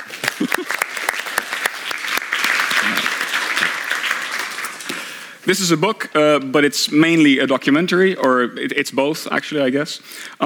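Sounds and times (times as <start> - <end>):
audience applause: 0.0 - 5.4
laughter: 0.1 - 1.4
speech: 0.4 - 1.0, 5.5 - 10.4.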